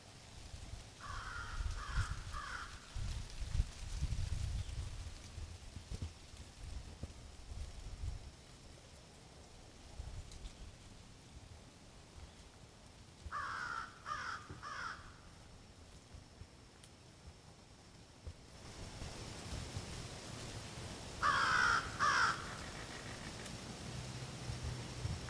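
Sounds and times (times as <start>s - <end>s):
soft patter: 0.2s - 25.2s
American Crow cawing: 1.0s - 2.9s, 13.3s - 15.4s, 21.2s - 23.3s.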